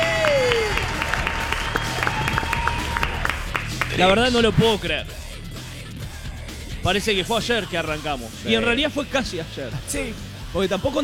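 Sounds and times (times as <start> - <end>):
studio applause: 0.0 - 4.1
speech: 4.0 - 5.2, 6.8 - 11.0.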